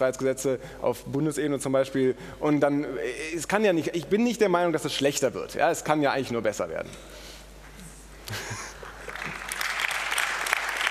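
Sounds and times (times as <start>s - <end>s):
speech: 0.0s - 7.3s, 8.3s - 8.7s
audience applause: 8.8s - 10.8s.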